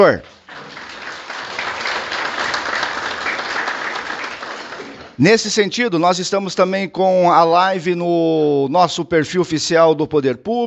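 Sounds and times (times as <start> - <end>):
speech: 0.0 - 0.3, 5.2 - 10.6
audience applause: 0.0 - 5.2.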